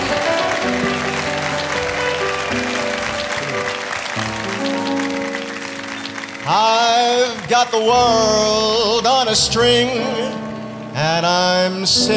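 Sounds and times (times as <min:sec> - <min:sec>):
audience applause welcoming a guest singer at a live show: 0:00.0 - 0:08.7
sustained band music: 0:00.0 - 0:12.1
speech: 0:06.5 - 0:10.4, 0:11.0 - 0:12.1.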